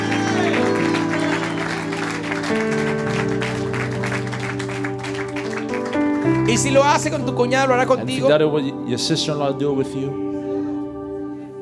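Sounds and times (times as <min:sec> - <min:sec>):
audience clapping: 0:00.0 - 0:07.3
speech: 0:06.6 - 0:10.2.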